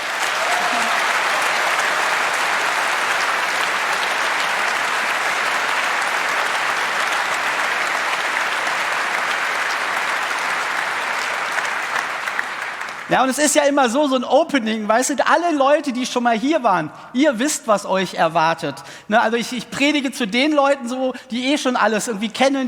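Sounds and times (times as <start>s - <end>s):
audience applause: 0.0s - 13.1s
speech: 13.1s - 22.6s.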